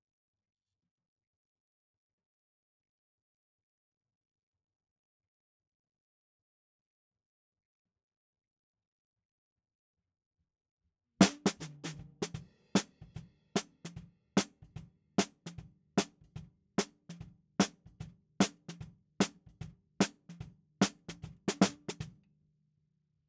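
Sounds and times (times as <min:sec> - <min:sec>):
snare drum: 0:11.2 - 0:22.1.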